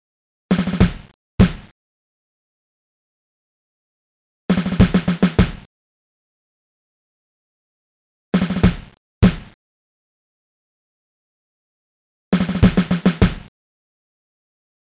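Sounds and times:
snare drum: 0.5s - 1.7s, 4.5s - 5.7s, 8.4s - 9.6s, 12.4s - 13.5s.

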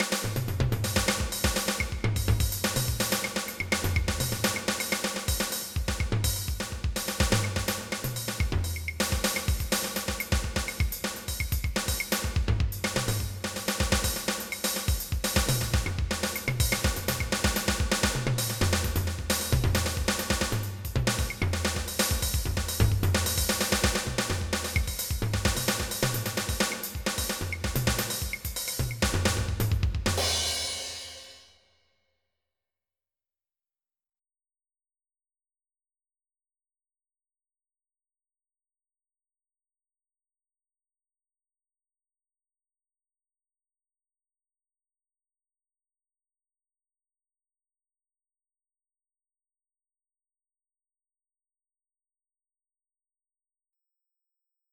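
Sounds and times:
drum solo: 0.0s - 31.5s.

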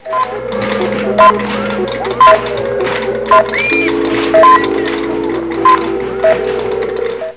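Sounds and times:
computer: 0.0s - 7.3s.

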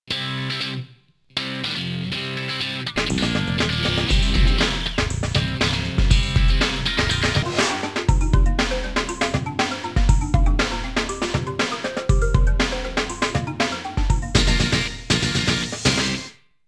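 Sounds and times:
hard rock music: 1.4s - 16.4s.

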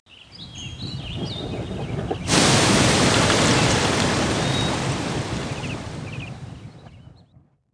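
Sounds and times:
geyser among buildings: 2.2s - 6.4s.

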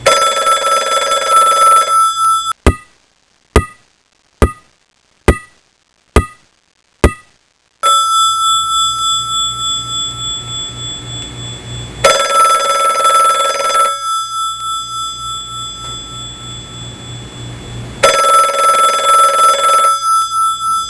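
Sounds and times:
phone bell ringing: 0.0s - 2.6s, 7.8s - 17.4s, 18.0s - 20.8s.

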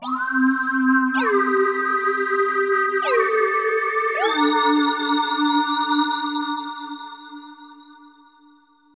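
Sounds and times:
ambient synth pad in C: 0.0s - 8.0s.

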